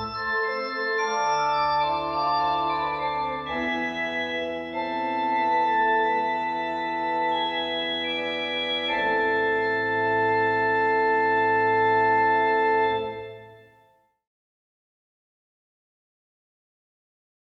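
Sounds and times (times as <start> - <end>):
classical prelude in A minor: 0.0 - 13.7.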